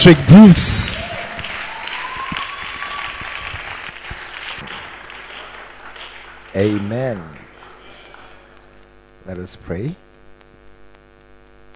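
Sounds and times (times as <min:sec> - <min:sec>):
speech: 0:00.0 - 0:00.9, 0:06.6 - 0:07.4, 0:09.3 - 0:10.0
crowd applauding a speaker: 0:00.0 - 0:08.8.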